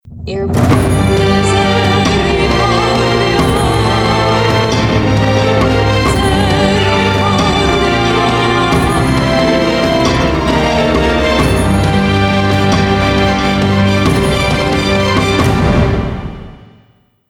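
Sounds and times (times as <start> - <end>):
suspense music: 0.1 - 16.9.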